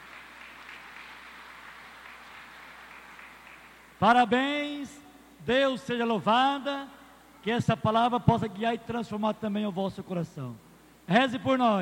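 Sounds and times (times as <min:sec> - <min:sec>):
round of applause: 0:00.0 - 0:04.0
speech: 0:04.0 - 0:11.8.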